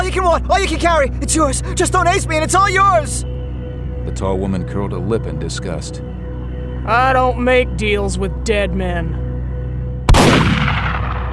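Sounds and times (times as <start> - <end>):
speech: 0.1 - 3.3, 4.1 - 6.1, 6.9 - 9.2
shotgun blast of double-aught buckshot: 10.1 - 11.3.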